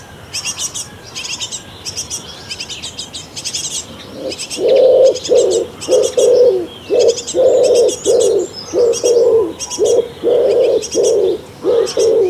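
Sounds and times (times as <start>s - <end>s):
bird chicks crying for food in a nest box: 0.0s - 12.2s.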